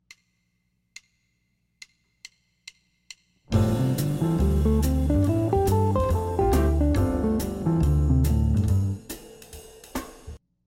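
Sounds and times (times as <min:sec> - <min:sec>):
G13sus chord: 0:03.6 - 0:08.9.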